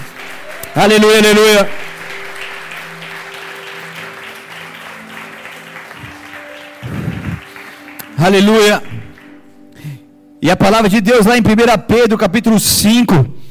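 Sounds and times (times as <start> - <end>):
audience applauding loudly: 0.0 - 9.6
speech: 0.8 - 1.9, 8.2 - 9.0, 10.4 - 13.4.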